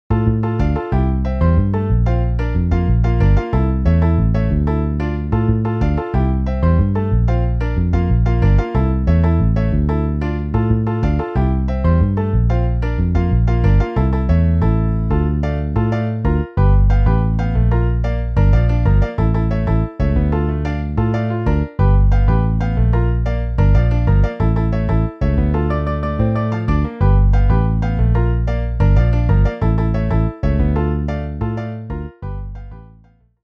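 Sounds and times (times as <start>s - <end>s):
MIDI piano and bass: 0.0s - 33.4s.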